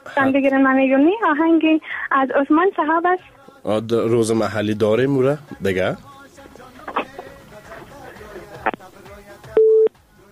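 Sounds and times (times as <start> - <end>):
speech: 0.2 - 6.1
faint murmuring voices: 6.4 - 9.6
telephone busy tone after a dropped call: 9.6 - 9.9.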